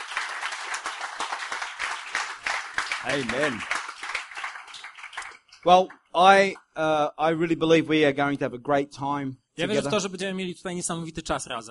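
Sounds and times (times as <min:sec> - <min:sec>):
audience applause: 0:00.0 - 0:05.6
speech: 0:03.0 - 0:03.8, 0:05.6 - 0:11.6.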